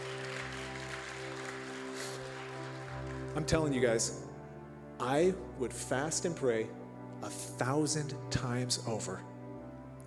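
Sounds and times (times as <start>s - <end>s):
audience clapping: 0.0s - 4.0s
speech: 3.4s - 4.3s, 5.0s - 9.3s.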